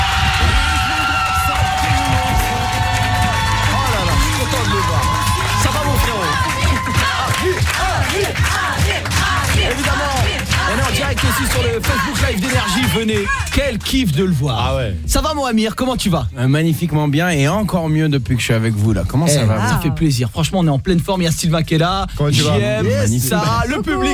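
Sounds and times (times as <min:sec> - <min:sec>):
crowd cheering, whooping and clapping to welcome a performer on stage: 0:00.0 - 0:14.1
music playing: 0:00.0 - 0:20.1
speech: 0:13.0 - 0:24.1.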